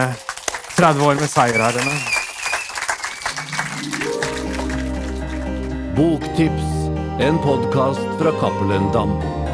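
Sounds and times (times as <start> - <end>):
speech: 0.0 - 2.1, 6.0 - 9.4
audience applause: 0.0 - 5.8.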